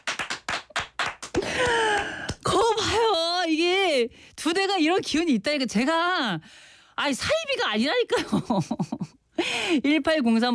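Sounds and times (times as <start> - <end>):
hands clapping: 0.0 - 2.7
speech: 4.0 - 10.5.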